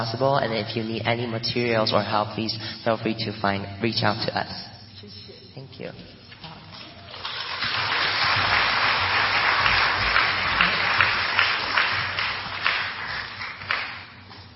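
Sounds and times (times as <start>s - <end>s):
speech: 0.0s - 6.1s
audience applause at an event: 6.9s - 14.2s.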